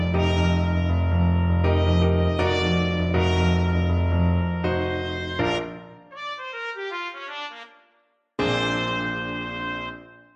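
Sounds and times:
jazzy trumpet: 0:00.0 - 0:10.3.

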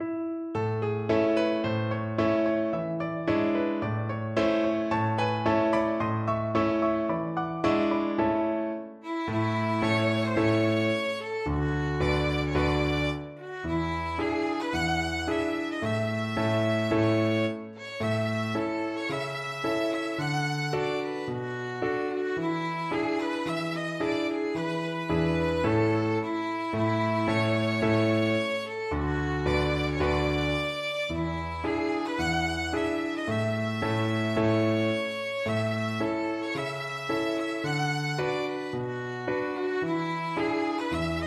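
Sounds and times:
violin: 0:00.7 - 0:41.2.

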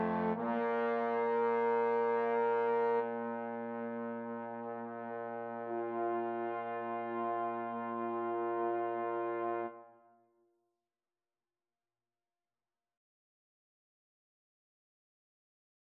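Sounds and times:
trombone trio playing a pavane: 0:00.0 - 0:09.8.

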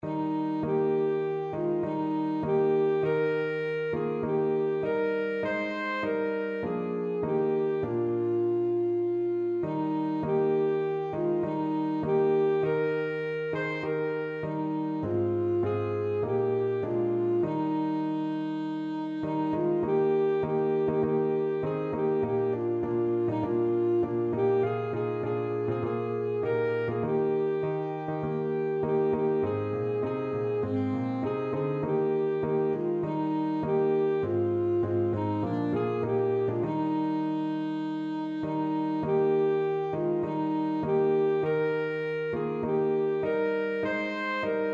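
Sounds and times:
alto saxophone: 0:00.0 - 0:44.7.

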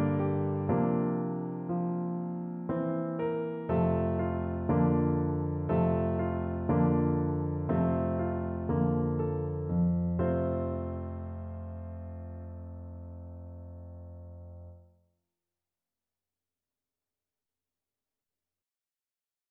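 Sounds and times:
piano piece without words: 0:00.0 - 0:14.8.

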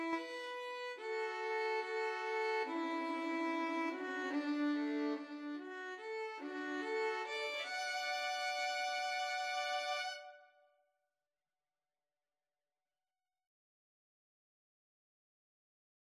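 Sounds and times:
violin duet: 0:00.0 - 0:10.5.

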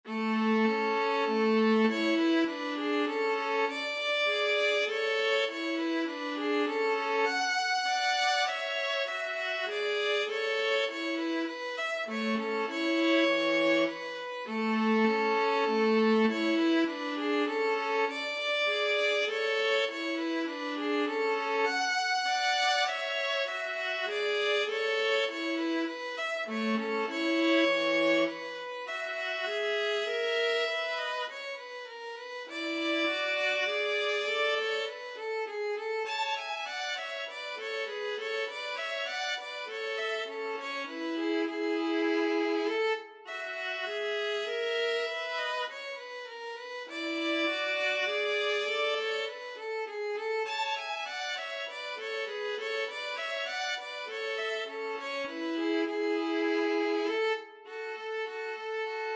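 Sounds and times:
violin and viola duet: 0:00.0 - 0:59.1.

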